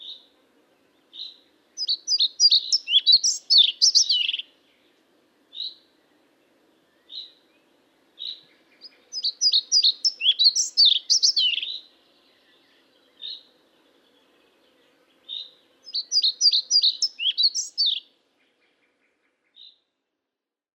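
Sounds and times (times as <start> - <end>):
Ficedula hypoleuca calling: 1.2 - 4.5, 8.2 - 11.9, 15.3 - 18.1.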